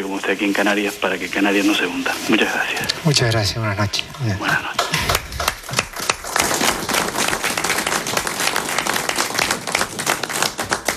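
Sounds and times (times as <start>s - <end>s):
speech: 0.1s - 5.1s
audience applause: 4.4s - 10.9s.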